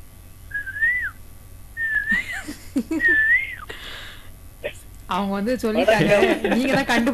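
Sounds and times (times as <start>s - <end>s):
person whistling an imitation of an Asian koel call: 0.5s - 1.2s, 1.8s - 2.2s, 3.0s - 3.7s
speech: 2.8s - 3.5s, 5.1s - 7.1s
laughter: 5.8s - 7.1s.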